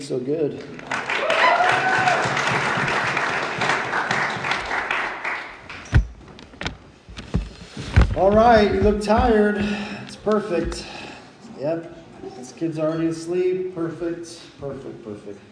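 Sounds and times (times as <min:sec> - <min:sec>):
speech: 0:00.0 - 0:01.0, 0:08.2 - 0:10.9, 0:11.6 - 0:12.0, 0:12.6 - 0:15.5
audience applauding for the band: 0:00.8 - 0:05.8.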